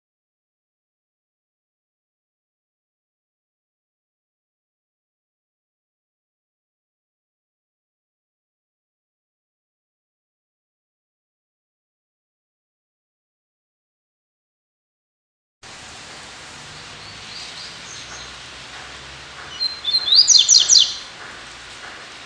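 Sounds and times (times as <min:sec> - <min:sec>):
Double-collared Seedeater singing: 0:16.1 - 0:22.2.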